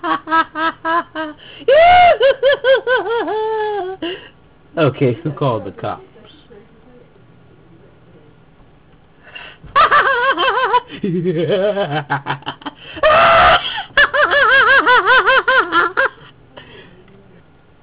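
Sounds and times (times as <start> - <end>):
person laughing: 0.0 - 4.2, 9.7 - 16.3.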